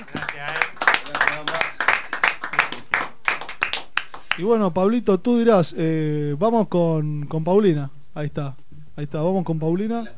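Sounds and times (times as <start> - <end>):
hand clapping for a guest on a Spanish-language show: 0.0 - 4.5
speech: 0.4 - 0.7, 4.4 - 10.1.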